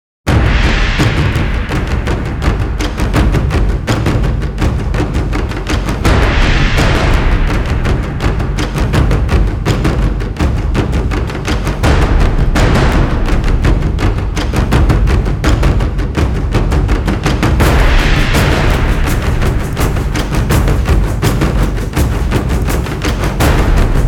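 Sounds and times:
low intensity action percussion loop: 1.0s - 24.0s.

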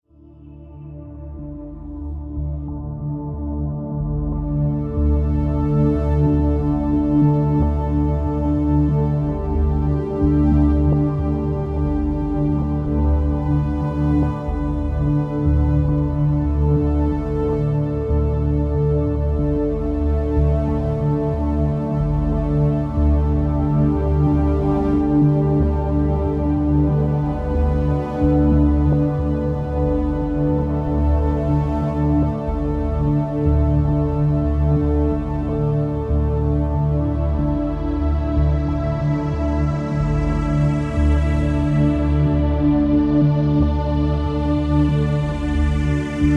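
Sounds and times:
water ambient track: 0.0s - 46.3s.

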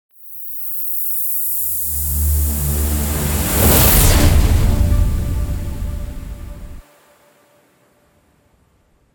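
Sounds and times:
transition end sound: 1.5s - 6.8s.

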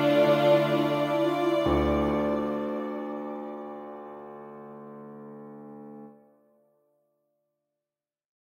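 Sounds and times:
book music: 0.0s - 5.1s.

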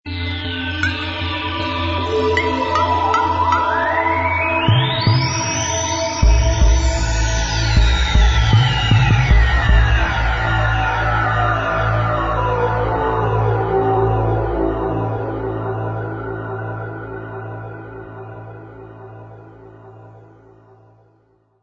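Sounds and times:
theme music: 0.4s - 16.8s.

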